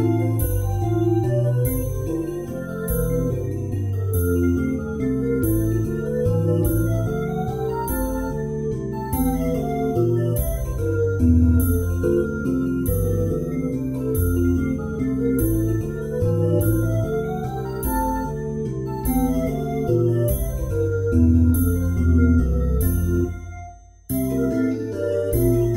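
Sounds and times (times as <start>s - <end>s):
fairground waltz music: 0.0s - 23.5s, 24.1s - 25.7s.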